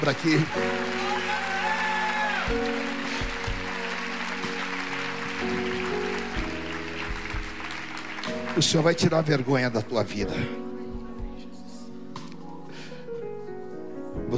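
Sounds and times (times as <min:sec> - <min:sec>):
speech: 0:00.0 - 0:00.7, 0:08.6 - 0:10.6
audience applause: 0:00.0 - 0:09.6
sustained keyboard chords: 0:00.0 - 0:14.3.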